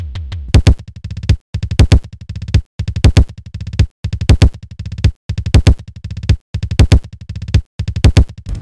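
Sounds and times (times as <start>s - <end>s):
twisted kick drum hits: 0.5s - 2.1s, 3.0s - 4.6s, 5.5s - 8.4s.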